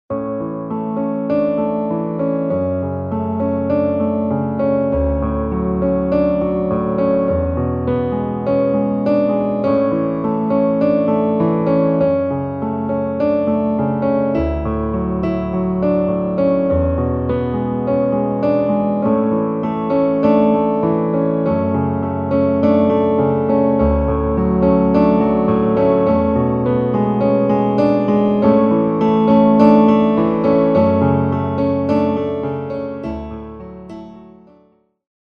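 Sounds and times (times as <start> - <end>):
piano: 0.0 - 35.0.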